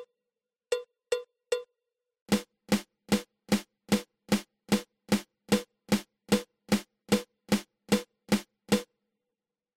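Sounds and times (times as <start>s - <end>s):
drum flam: 2.3s - 8.9s.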